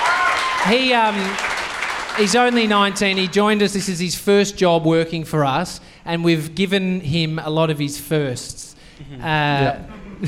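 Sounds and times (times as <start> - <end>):
live audience clapping: 0.0 - 4.0
speech: 0.6 - 1.5, 2.2 - 10.2.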